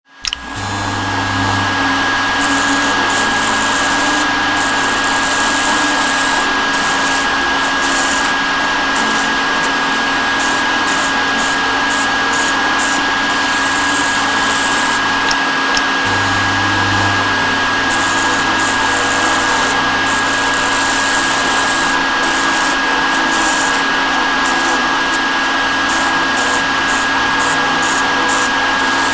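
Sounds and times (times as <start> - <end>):
mixer: 0.0 - 29.1
hair dryer: 0.2 - 29.1
razor: 0.2 - 29.1.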